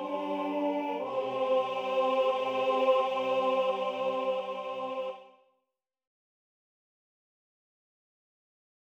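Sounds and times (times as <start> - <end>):
alto-dominant vocal chant: 0.0 - 5.4.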